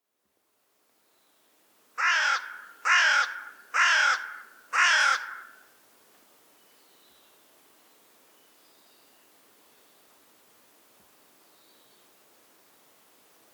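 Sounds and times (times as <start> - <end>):
carrion crow giving harsh hoarse caws: 2.0 - 5.6.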